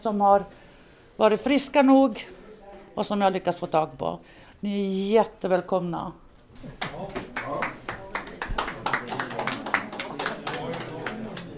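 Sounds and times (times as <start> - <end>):
speech: 0.0 - 0.6, 1.2 - 2.4, 3.0 - 7.2
applause from people holding glasses: 6.8 - 11.5.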